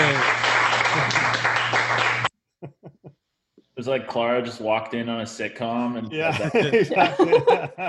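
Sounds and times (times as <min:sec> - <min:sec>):
live CASA audience clapping: 0:00.0 - 0:02.3
speech: 0:03.8 - 0:07.8
laughter: 0:06.2 - 0:07.8.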